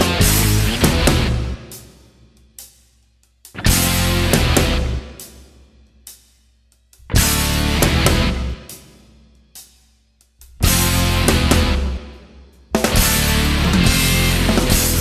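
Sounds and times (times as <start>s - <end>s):
backing track: 0.0s - 1.9s, 3.5s - 5.3s, 7.0s - 8.8s, 10.4s - 14.9s.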